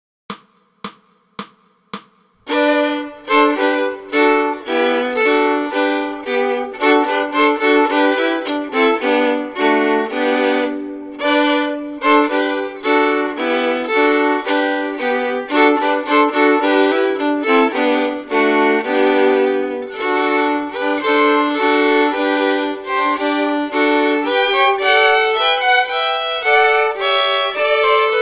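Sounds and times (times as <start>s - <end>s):
fiddle: 2.5s - 28.2s.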